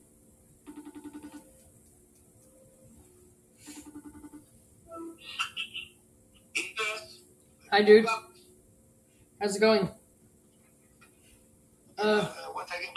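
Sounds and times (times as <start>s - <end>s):
FaceTime audio call ringing: 0.7s - 1.6s
speech: 7.8s - 8.3s, 9.4s - 10.0s, 12.0s - 12.4s.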